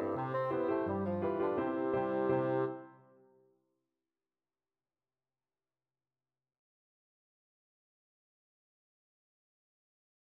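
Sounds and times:
bassoon: 0.0s - 3.1s.

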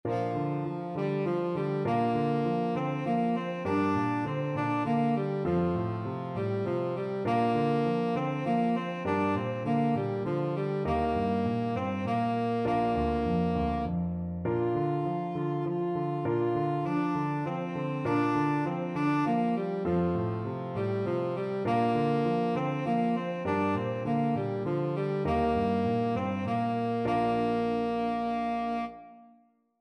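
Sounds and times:
tenor saxophone: 0.1s - 29.5s.

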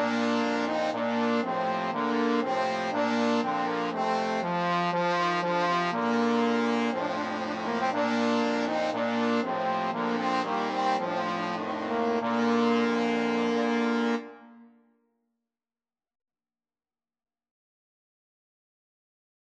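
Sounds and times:
trombone quartet: 0.0s - 14.4s.

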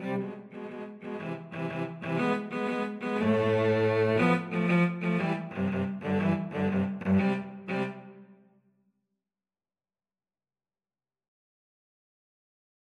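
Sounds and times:
cello trio: 0.0s - 8.2s.

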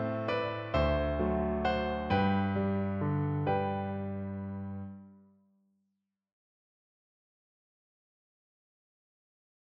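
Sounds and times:
piano waltz: 0.0s - 5.1s.

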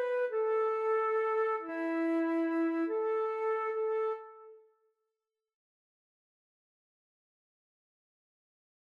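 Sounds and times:
flute duet playing a siciliana: 0.0s - 4.6s.

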